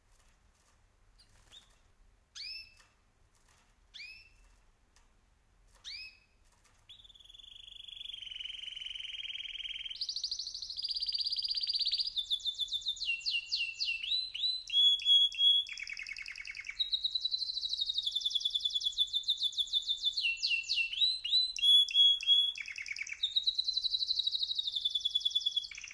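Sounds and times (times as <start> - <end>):
birds: 5.8 - 25.9.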